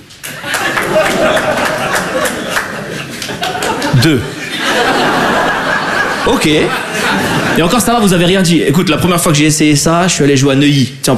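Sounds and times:
audience clapping: 0:00.0 - 0:06.0
people chuckling and murmuring: 0:00.3 - 0:08.0
speech: 0:04.0 - 0:05.0, 0:06.2 - 0:11.1.

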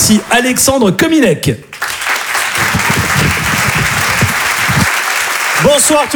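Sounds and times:
speech: 0:00.1 - 0:01.9, 0:05.6 - 0:06.1
audience applause: 0:01.7 - 0:06.1.

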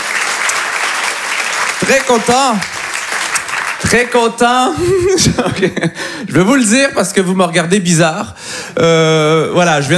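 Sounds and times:
audience applause: 0:00.0 - 0:04.3
speech: 0:01.9 - 0:02.7, 0:03.9 - 0:09.9.

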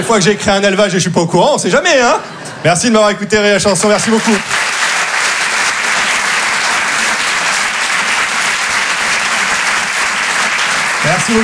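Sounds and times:
speech: 0:00.0 - 0:04.7, 0:11.3 - 0:11.4
audience applause: 0:03.7 - 0:11.4.

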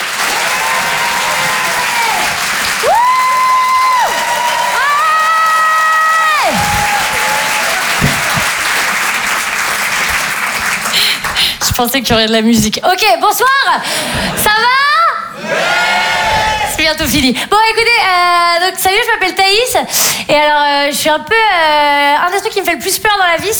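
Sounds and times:
comedy club audience whooping: 0:00.0 - 0:11.0, 0:15.4 - 0:16.8
comedy club audience applauding at the Apollo Théâtre in Paris: 0:00.0 - 0:11.8
speech: 0:11.8 - 0:14.9, 0:16.9 - 0:23.5.

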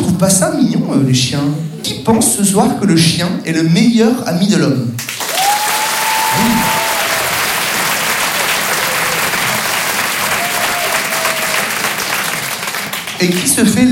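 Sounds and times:
speech: 0:00.2 - 0:05.1, 0:13.2 - 0:13.8
sustained applause from a large audience: 0:05.0 - 0:13.8
whistles and cheers: 0:05.2 - 0:12.1.

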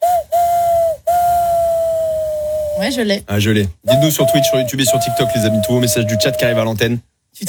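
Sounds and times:
person imitating a train whistle using fingers and mouth: 0:00.0 - 0:03.0, 0:03.8 - 0:06.8
speech: 0:02.8 - 0:07.4.

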